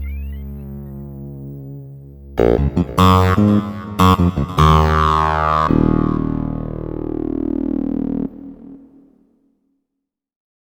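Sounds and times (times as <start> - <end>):
musical solo: 2.4 - 9.2.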